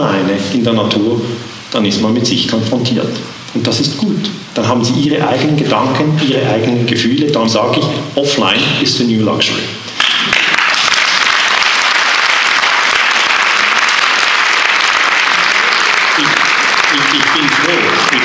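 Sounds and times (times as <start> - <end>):
speech: 0.3 - 9.8
audience applause: 10.0 - 18.2.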